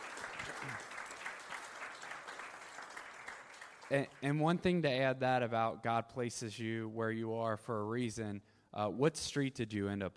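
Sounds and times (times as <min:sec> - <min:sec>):
audience round of applause: 0:00.0 - 0:04.3
speech: 0:00.6 - 0:00.9, 0:03.9 - 0:10.1.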